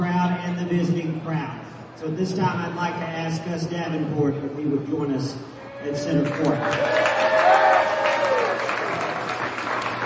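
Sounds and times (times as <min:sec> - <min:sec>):
speech: 0:00.6 - 0:07.6
audience ovation applause: 0:06.2 - 0:10.0.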